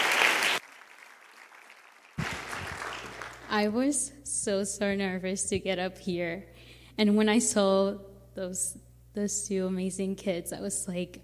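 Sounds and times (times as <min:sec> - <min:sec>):
audience applause: 0:00.0 - 0:03.5
speech: 0:03.5 - 0:11.2.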